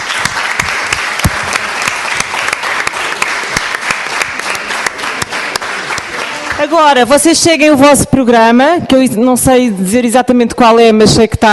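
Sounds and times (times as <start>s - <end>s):
crowd applauding: 0.0s - 7.1s
speech: 6.6s - 11.5s.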